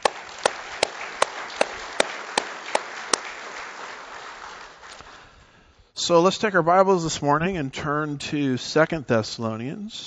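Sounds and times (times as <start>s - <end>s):
audience applause: 0.0s - 5.4s
speech: 6.1s - 10.0s.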